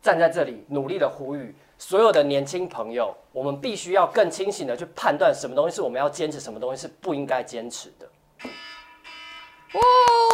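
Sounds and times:
speech: 0:00.0 - 0:08.7, 0:09.7 - 0:10.3
timer buzzer signalling time is up: 0:08.4 - 0:10.3.

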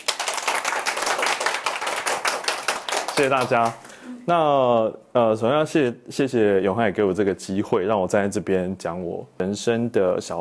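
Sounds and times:
audience applause: 0:00.0 - 0:03.8
speech: 0:03.2 - 0:10.3.

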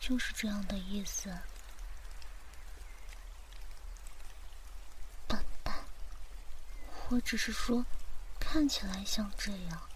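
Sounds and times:
steady rain falling: 0:00.0 - 0:09.9
speech: 0:00.1 - 0:01.6, 0:07.1 - 0:09.9.

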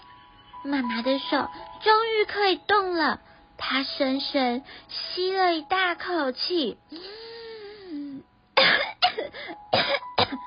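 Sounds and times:
speech: 0:00.6 - 0:07.2
harsh choking coughs voiced by a performer: 0:08.6 - 0:10.4.

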